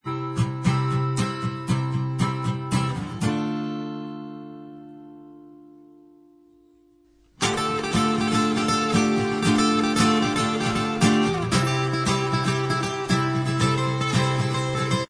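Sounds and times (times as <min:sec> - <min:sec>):
acoustic instrumental music: 0:00.0 - 0:15.0.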